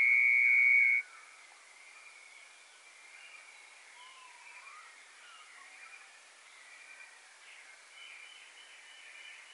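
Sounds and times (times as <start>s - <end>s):
bunting singing: 0.0s - 1.0s.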